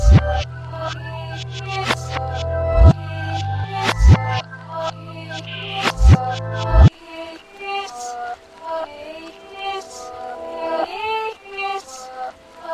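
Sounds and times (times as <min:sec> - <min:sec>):
lo-fi uh oh sound: 0:00.0 - 0:06.9.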